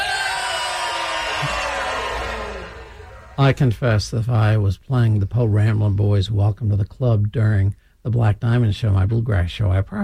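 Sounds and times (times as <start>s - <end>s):
crowd hollering together on a count of three: 0.0s - 3.4s
speech: 3.4s - 10.0s.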